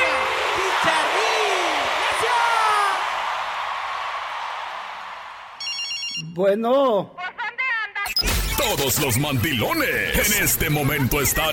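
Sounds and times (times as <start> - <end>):
applause: 0.0 - 5.6
speech: 6.4 - 7.2, 8.2 - 11.5.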